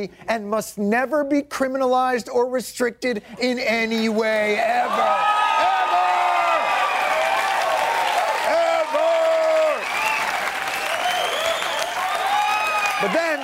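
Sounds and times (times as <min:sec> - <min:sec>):
speech: 0:00.0 - 0:05.4
studio audience applause: 0:04.4 - 0:13.4.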